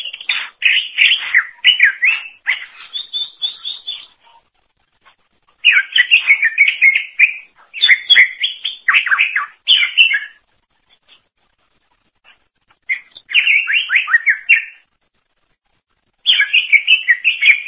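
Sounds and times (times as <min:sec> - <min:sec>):
greater green leafbird song: 0:00.1 - 0:04.1, 0:05.6 - 0:10.4, 0:12.9 - 0:14.8, 0:16.2 - 0:17.6.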